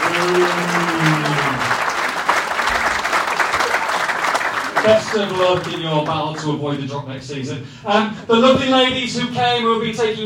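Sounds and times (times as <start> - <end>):
audience applause: 0.0 - 6.4
speech: 4.8 - 10.2.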